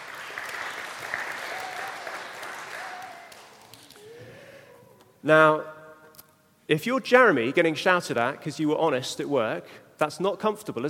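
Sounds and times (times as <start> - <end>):
audience clapping: 0.0 - 4.2
speech: 5.2 - 5.7, 6.7 - 10.8.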